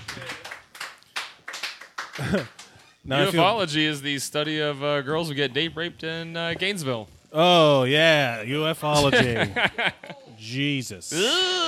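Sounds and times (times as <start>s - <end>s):
audience applause: 0.0s - 2.8s
laughter: 2.2s - 2.6s, 9.0s - 10.3s
speech: 2.2s - 11.6s.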